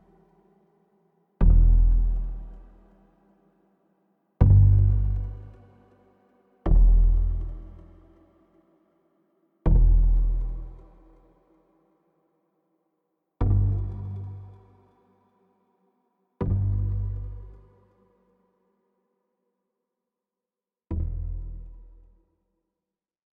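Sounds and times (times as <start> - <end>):
bass: 0.0 - 0.4, 1.4 - 3.1, 4.4 - 8.4, 9.6 - 11.4, 13.4 - 15.0, 16.4 - 18.2, 20.9 - 22.3.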